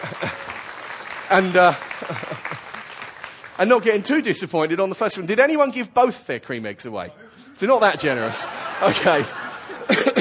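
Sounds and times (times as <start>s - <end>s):
laughter: 0.0s - 0.8s, 1.5s - 3.0s, 7.4s - 10.1s
audience clapping: 0.0s - 5.1s
speech: 1.3s - 2.4s, 3.6s - 9.4s.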